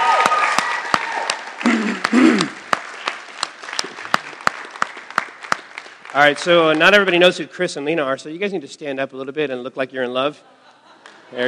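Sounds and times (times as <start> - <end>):
audience applause for an engagement announcement: 0.0 - 7.0
speech: 6.2 - 10.6.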